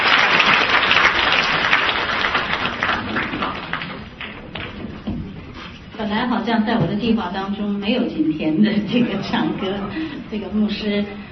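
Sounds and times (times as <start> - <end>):
audience applause: 0.0 - 5.8
speech: 6.2 - 11.2
laughter: 8.4 - 10.7.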